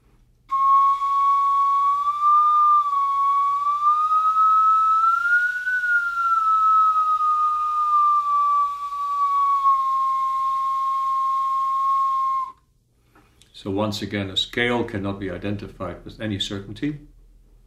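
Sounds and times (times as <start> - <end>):
bone flute playing sliding notes: 0.5 - 12.6
speech: 13.6 - 17.1.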